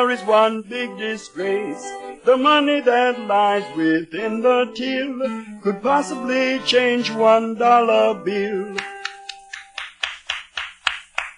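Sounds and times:
speech: 0.0 - 8.9
applause: 8.8 - 11.3.

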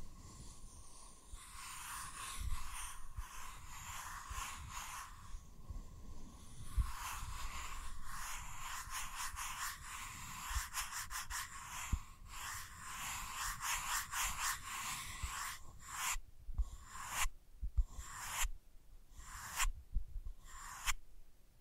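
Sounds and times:
soft tracing on a sensitive surface: 0.0 - 18.5, 19.1 - 21.0.

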